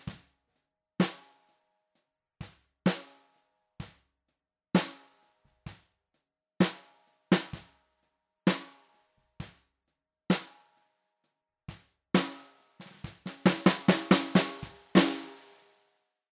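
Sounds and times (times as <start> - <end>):
snare drum recorded from the bottom in mono: 0.0 - 0.2, 1.0 - 1.2, 2.9 - 3.2, 4.8 - 5.1, 6.6 - 7.7, 8.5 - 8.8, 10.3 - 10.6, 11.7 - 15.6.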